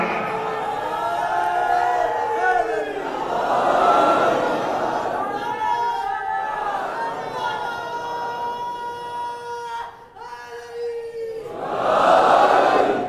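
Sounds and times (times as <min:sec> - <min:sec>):
crowd chanting religious slogans in unison: 0:00.2 - 0:09.0, 0:11.4 - 0:13.0.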